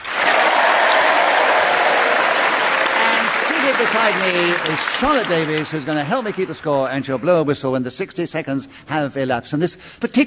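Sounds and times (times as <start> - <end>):
audience applause: 0.0 - 7.6
speech: 3.8 - 10.2.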